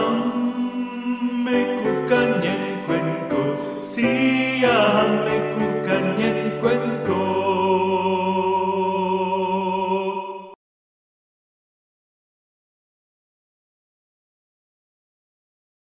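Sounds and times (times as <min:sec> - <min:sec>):
soprano singing: 0:00.0 - 0:10.6.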